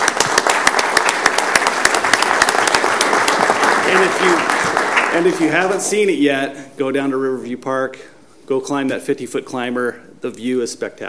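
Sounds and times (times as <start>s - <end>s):
audience applause: 0.0s - 6.0s
speech: 5.2s - 11.0s.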